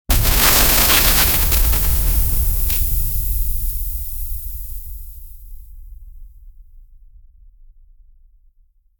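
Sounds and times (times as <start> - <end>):
celestial shattering: 0.1 - 5.5.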